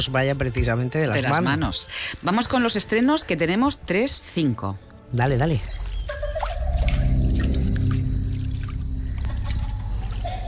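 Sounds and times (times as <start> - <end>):
speech: 0.0 - 6.3
water drips and trickles: 5.0 - 10.4
water splashing in a swimming pool: 5.6 - 10.4
low sustained hum: 6.1 - 10.4.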